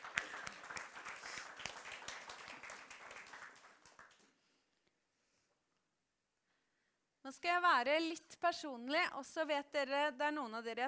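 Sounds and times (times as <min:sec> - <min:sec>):
applause: 0:00.0 - 0:04.5
speech: 0:07.3 - 0:10.8.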